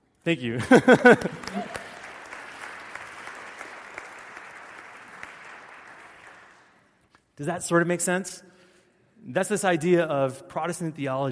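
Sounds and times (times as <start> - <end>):
speech: 0.2 - 1.8, 7.4 - 8.6, 9.2 - 11.3
laughter: 0.6 - 2.1
audience clapping: 0.6 - 7.0.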